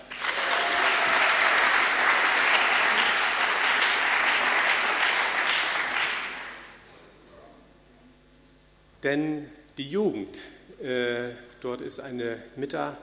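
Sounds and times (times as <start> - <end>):
audience clapping: 0.0 - 6.8
speech: 9.0 - 13.0.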